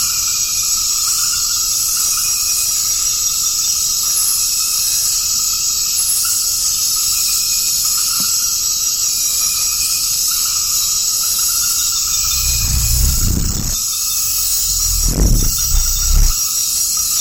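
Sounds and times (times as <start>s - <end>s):
forest swamp ambience: 12.0s - 16.4s.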